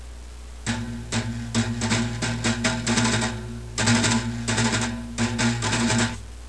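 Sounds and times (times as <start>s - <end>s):
drum: 0.6s - 6.3s.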